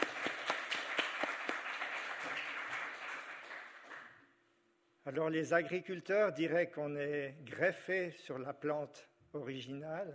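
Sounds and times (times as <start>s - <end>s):
audience applause: 0.0s - 4.1s
speech: 5.0s - 10.1s.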